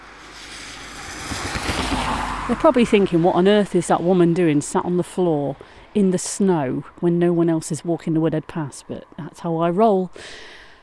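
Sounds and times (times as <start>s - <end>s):
car passing on snowy road with slushy tyre hiss: 0.0s - 3.2s
low rumbling thumps: 0.0s - 4.9s
speech: 2.5s - 10.6s.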